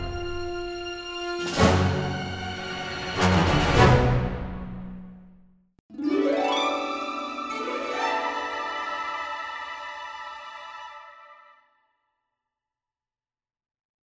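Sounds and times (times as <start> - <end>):
orchestral music: 0.0 - 5.3, 5.9 - 11.6.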